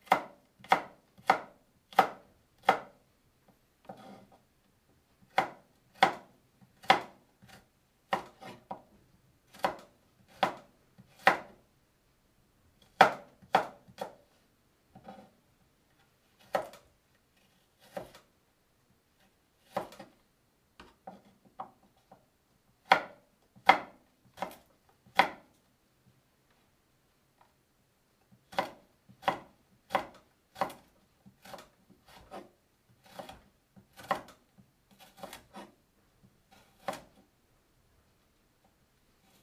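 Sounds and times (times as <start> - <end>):
knife chopping on a board while making tomato sauce pasta: 0.0 - 3.0, 3.9 - 4.2, 5.3 - 8.9, 9.5 - 11.5, 12.9 - 14.2, 16.4 - 16.8, 17.8 - 18.2, 19.6 - 20.1, 22.8 - 25.5, 28.5 - 34.4, 35.0 - 35.8, 36.5 - 37.2.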